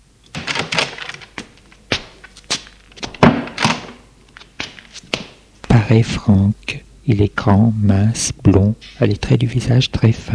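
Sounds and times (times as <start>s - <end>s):
door opening: 0.3s - 4.1s
speech: 5.9s - 10.3s.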